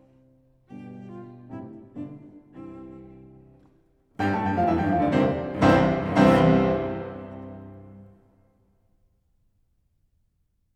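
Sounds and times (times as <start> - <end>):
cello and piano sonata allegro: 0.0 - 8.2.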